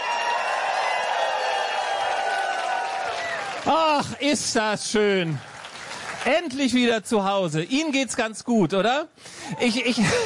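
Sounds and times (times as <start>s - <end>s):
audience applause: 0.0s - 6.7s
speech: 3.6s - 5.5s, 6.2s - 10.2s.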